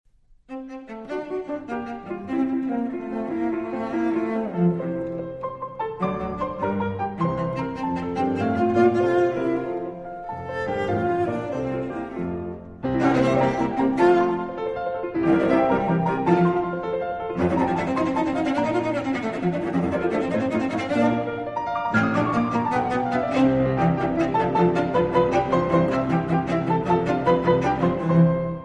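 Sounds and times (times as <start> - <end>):
cello sonata rondo: 0.1 - 28.6.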